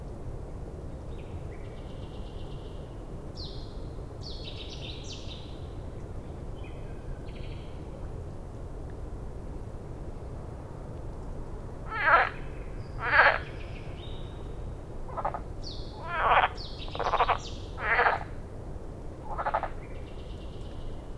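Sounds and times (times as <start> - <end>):
common frog chorus of rapid pulsed croaks: 11.7 - 20.2.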